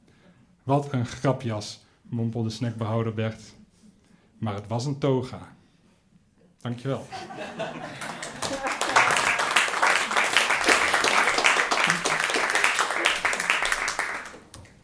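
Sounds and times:
speech: 0.7s - 3.6s, 4.4s - 5.6s, 6.6s - 8.8s
people chuckling: 7.0s - 9.6s, 10.8s - 13.2s
audience applause: 7.4s - 14.7s.

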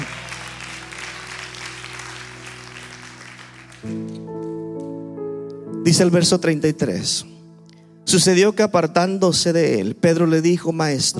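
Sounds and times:
audience clapping: 0.0s - 5.0s
speech: 3.8s - 4.4s, 5.9s - 7.4s, 8.1s - 11.1s.

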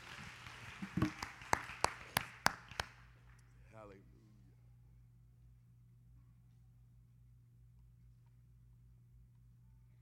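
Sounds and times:
audience hand claps in praise: 0.0s - 3.3s
low steady hum: 3.1s - 10.0s.

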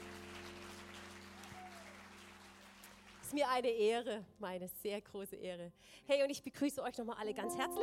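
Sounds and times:
audience applause: 0.0s - 3.4s
speech: 3.3s - 7.8s.

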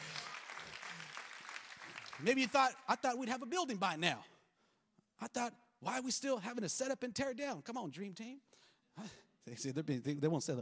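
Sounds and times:
audience applause: 0.0s - 2.8s
speech: 2.2s - 4.3s, 5.2s - 10.6s.

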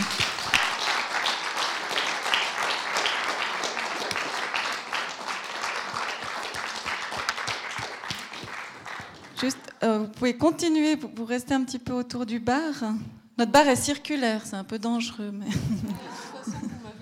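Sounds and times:
crowd applauding: 0.0s - 9.6s
speech: 9.4s - 16.6s
laughter: 15.5s - 16.9s.

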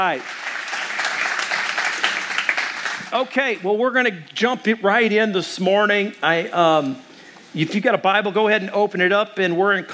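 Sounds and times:
speech: 0.0s - 0.5s, 3.1s - 9.9s
audience applause: 0.0s - 3.2s.

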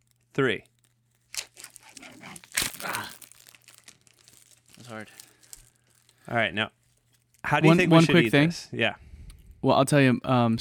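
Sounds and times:
plastic wrapper of Frigo Cheeseheads string cheese being peeled: 0.0s - 8.1s
speech: 0.4s - 0.7s, 4.9s - 5.2s, 6.3s - 6.8s, 7.5s - 9.0s, 9.6s - 10.5s.

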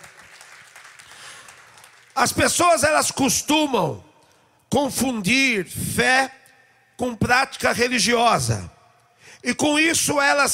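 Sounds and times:
audience applauding: 0.0s - 2.2s
speech: 2.2s - 4.1s, 4.7s - 6.4s, 7.0s - 8.8s, 9.4s - 10.5s.

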